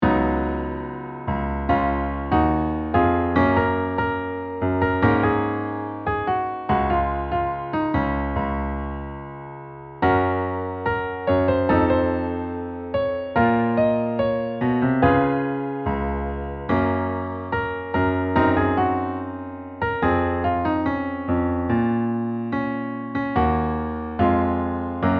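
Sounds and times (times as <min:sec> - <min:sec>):
piano: 0:00.0 - 0:25.1.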